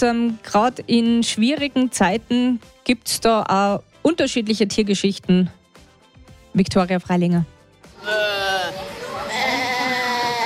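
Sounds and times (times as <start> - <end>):
speech: 0.0 - 5.6, 6.6 - 8.9
mother goat bleating loudly for her kids: 8.0 - 10.4.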